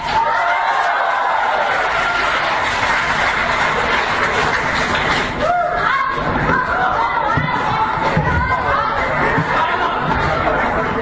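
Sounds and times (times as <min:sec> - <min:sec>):
audience applause: 0:00.2 - 0:05.5
laughter and crowd chatter: 0:00.2 - 0:10.9.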